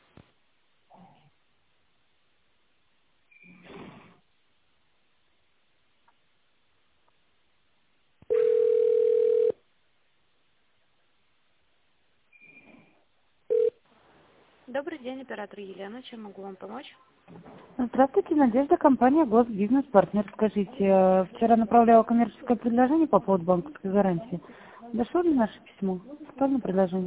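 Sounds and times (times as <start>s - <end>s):
telephone ringback tone: 8.3s - 9.6s, 13.5s - 13.8s
speech: 14.8s - 27.0s.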